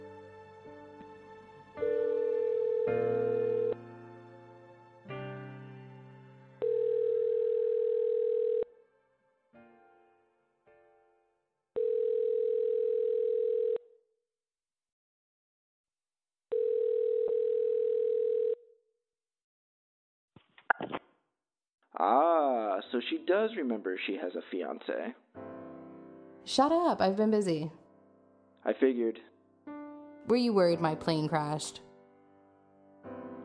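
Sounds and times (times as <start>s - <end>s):
phone ringback tone while a call is placed: 1.8s - 3.8s, 6.6s - 8.7s, 11.8s - 14.0s, 16.5s - 18.8s
speech: 22.0s - 22.3s, 22.9s - 25.2s, 26.5s - 27.8s, 28.6s - 29.3s, 30.3s - 31.8s.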